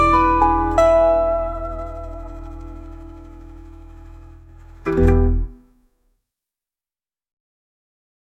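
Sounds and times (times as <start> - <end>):
dark country music at 116 BPM: 0.0 - 5.6.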